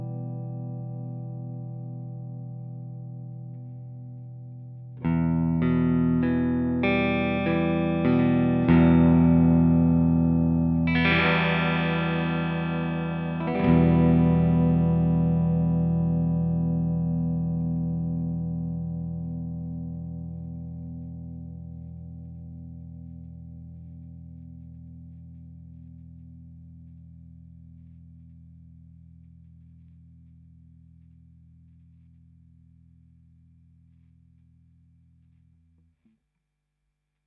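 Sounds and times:
Maybach Lester Junior Double Cut electric guitar sustain and resonance: 0.0s - 28.4s.

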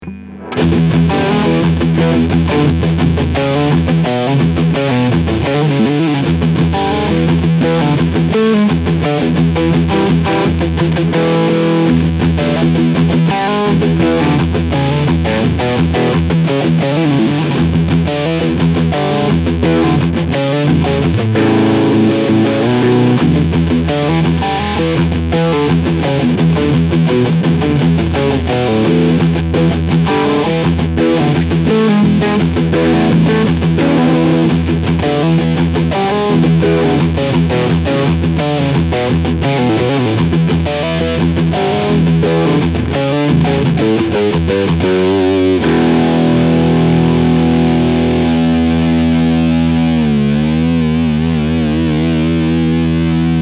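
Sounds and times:
MXR Dookie Drive overdrive pedal tone with blend and mid scoop on: 0.0s - 53.4s.

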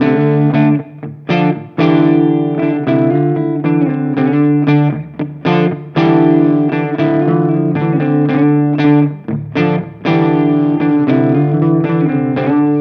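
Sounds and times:
electric guitar through Torpedo CAB M 2 crunch preamp: 0.0s - 12.8s.

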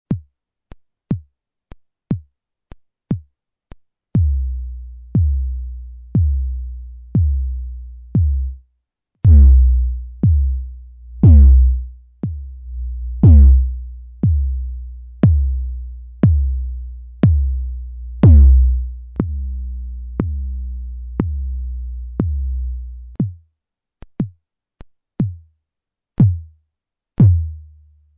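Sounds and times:
Teenage Engineering TX-6 kick drum: 4.2s - 4.6s, 5.2s - 7.6s, 8.2s - 8.6s, 9.2s - 23.4s, 26.2s - 26.5s, 27.2s - 27.6s.

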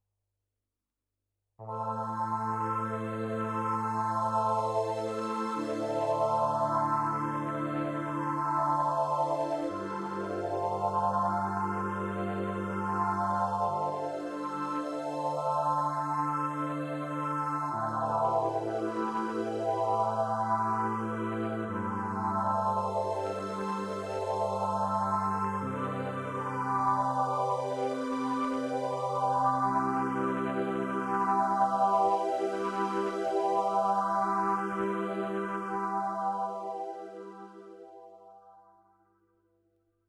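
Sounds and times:
Solina string synthesizer: 1.7s - 38.0s.

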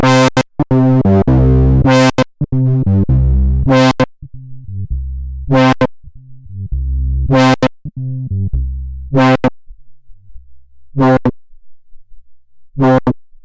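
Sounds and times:
FET synthesizer filter sequence on three oscillators: 0.0s - 9.5s.

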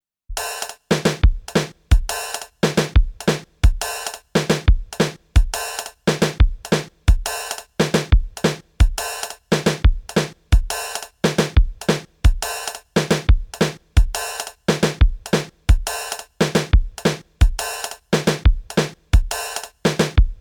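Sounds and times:
drum machine groove: 0.3s - 20.3s.

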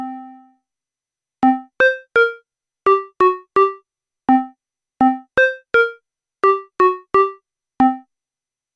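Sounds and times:
random modular synth patches: 1.5s - 8.0s.

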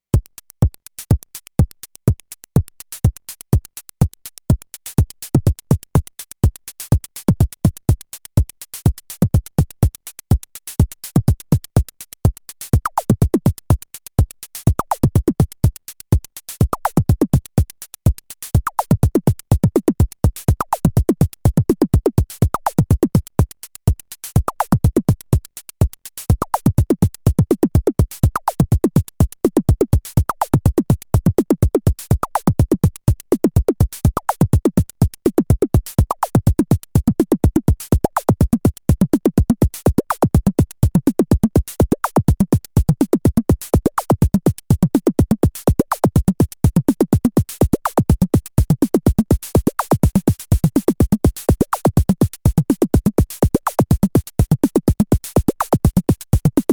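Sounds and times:
hi-hat: 0.0s - 56.7s
bass drum: 18.6s - 23.4s, 26.3s - 56.7s.

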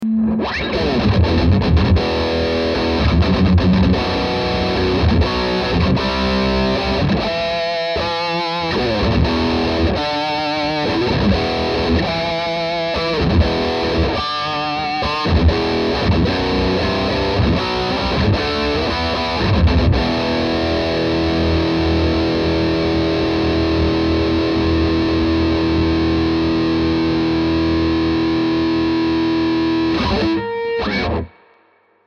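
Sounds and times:
Les Paul electric guitar with modern gain: 0.0s - 31.9s.

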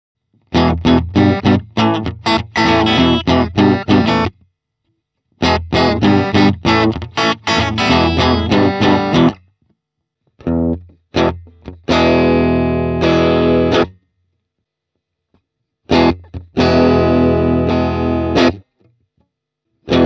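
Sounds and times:
amp simulated guitar: 0.4s - 4.4s, 5.4s - 9.5s, 10.4s - 14.0s, 15.8s - 20.0s.

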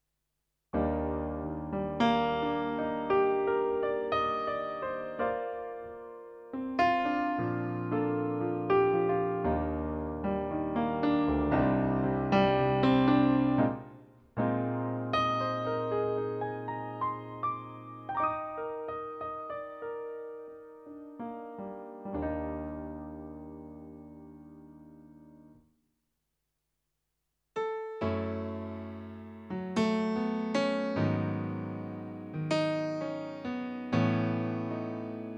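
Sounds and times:
piano: 0.8s - 25.8s, 27.6s - 35.3s.

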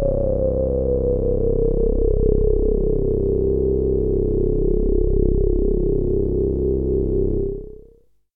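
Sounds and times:
Minimoog synthesizer filter sweeps: 0.0s - 7.7s.

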